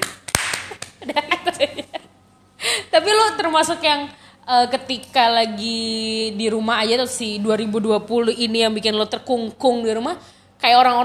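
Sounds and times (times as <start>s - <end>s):
hand clapping: 0.0s - 1.4s
laughter: 0.7s - 2.8s
speech: 1.0s - 1.5s, 3.1s - 11.0s.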